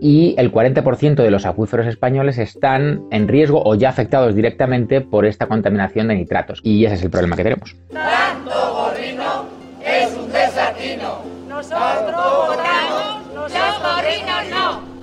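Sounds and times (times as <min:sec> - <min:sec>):
speech: 0:00.0 - 0:12.6
livestock farmers protesting in Cuenca: 0:07.9 - 0:15.0.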